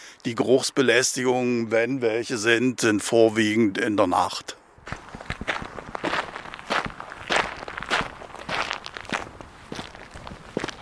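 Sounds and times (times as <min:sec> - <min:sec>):
speech: 0:00.2 - 0:05.0
footsteps crunching outdoors: 0:04.8 - 0:10.8.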